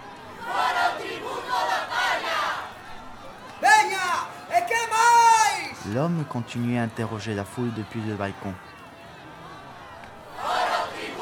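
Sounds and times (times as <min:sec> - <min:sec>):
indignant crowd shouting together in a square: 0:00.0 - 0:11.1
speech: 0:05.9 - 0:08.7.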